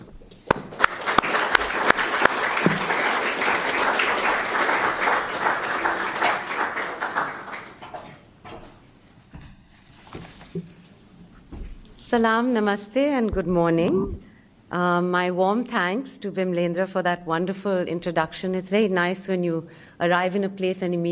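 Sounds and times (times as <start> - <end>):
audience applause: 0.5 - 8.3
speech: 12.1 - 21.1.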